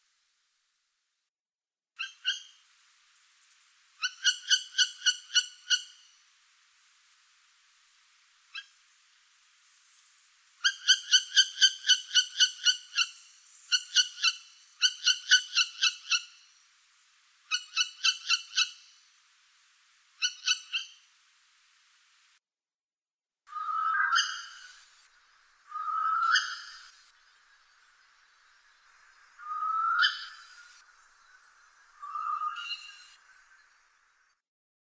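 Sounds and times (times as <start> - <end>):
northern hawk owl calling: 2.0 - 2.6, 4.0 - 6.1, 10.6 - 16.4, 17.5 - 19.0, 20.2 - 21.1, 23.5 - 24.8, 25.7 - 27.0, 28.9 - 33.6.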